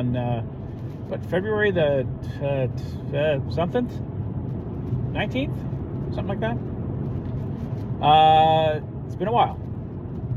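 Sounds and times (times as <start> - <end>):
speech: 0.0 - 4.1, 5.2 - 6.7, 8.0 - 9.6
car interior road rumble while driving home from work: 0.0 - 10.3.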